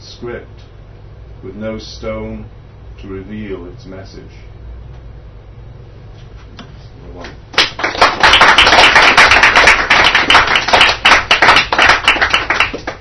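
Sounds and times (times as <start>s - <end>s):
speech: 0.2s - 0.7s, 1.4s - 4.5s
audience applause: 7.6s - 13.0s.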